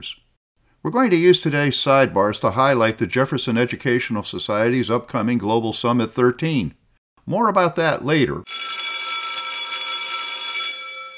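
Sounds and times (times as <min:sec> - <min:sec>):
speech: 0:00.0 - 0:00.2, 0:00.8 - 0:08.5
bell signaling a sidebar segment: 0:08.5 - 0:11.1.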